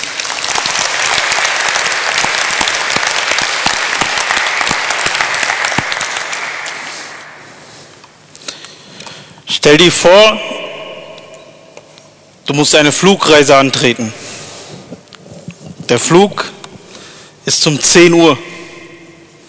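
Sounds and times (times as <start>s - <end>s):
audience applause: 0.0s - 7.5s
speech: 9.6s - 10.5s, 12.5s - 14.3s, 15.9s - 16.5s, 17.5s - 18.5s.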